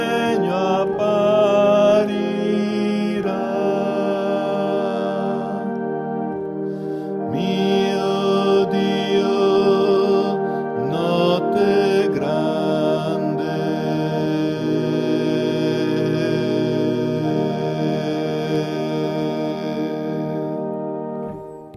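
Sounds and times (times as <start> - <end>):
sopranos singing together: 0.0 - 21.4.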